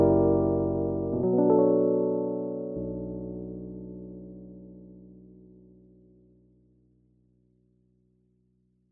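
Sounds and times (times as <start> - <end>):
Casio PX 200 keyboard: 0.0 - 6.1.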